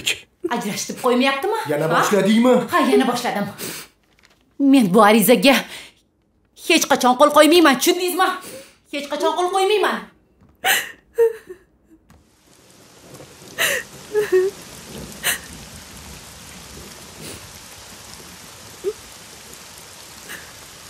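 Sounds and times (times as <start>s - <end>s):
speech: 0.0s - 3.8s, 4.6s - 5.8s, 6.7s - 11.5s, 13.6s - 14.6s
rain falling: 0.5s - 4.5s, 8.9s - 20.8s.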